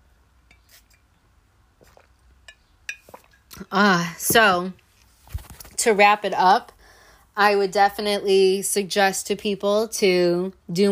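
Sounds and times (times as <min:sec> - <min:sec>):
glass clinks: 0:02.5 - 0:03.2
speech: 0:03.7 - 0:04.8, 0:05.8 - 0:06.7, 0:07.4 - 0:10.9
handling rustles: 0:04.2 - 0:05.8.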